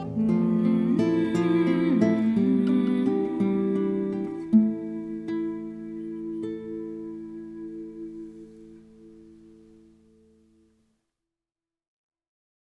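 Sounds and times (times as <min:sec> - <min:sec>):
children's song: 0:00.1 - 0:08.4.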